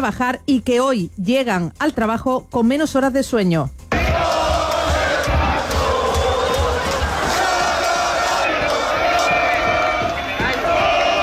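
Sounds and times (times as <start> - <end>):
speech: 0.0 - 3.8
street crowd cheering and chanting in football victory celebration: 3.9 - 11.2.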